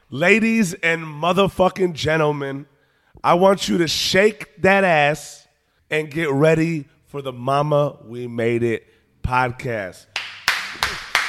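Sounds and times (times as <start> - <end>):
speech: 0.1 - 10.1
sharp hand claps: 10.1 - 11.2.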